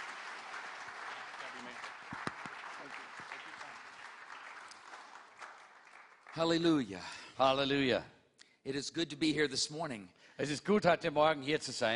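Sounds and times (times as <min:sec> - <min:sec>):
audience applause welcoming guest speaker John Easter: 0:00.0 - 0:06.9
speech: 0:06.4 - 0:11.9.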